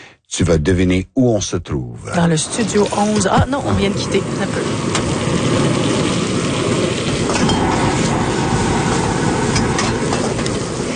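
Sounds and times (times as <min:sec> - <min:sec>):
speech: 0:00.3 - 0:06.0
propane burner flame at market stall: 0:02.0 - 0:10.9.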